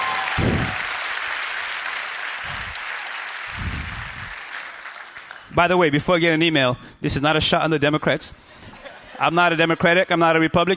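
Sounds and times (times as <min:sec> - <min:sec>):
audience clapping together in unison: 0:00.0 - 0:05.7
speech: 0:05.6 - 0:10.7.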